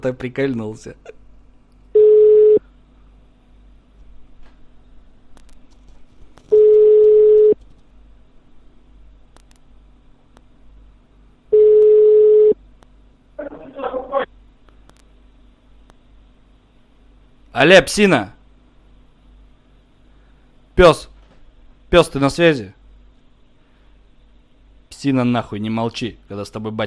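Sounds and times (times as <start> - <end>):
speech: 0.0 - 1.2, 17.6 - 18.4, 20.8 - 21.1, 21.9 - 22.8, 25.0 - 26.8
telephone ringing tones from a call placed by clicking: 2.0 - 2.6, 6.5 - 7.6, 11.5 - 12.6.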